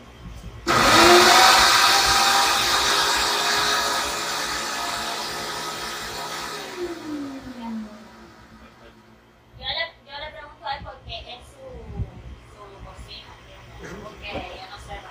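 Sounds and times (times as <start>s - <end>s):
kitchen blender crushing ingredients: 0.7s - 8.9s.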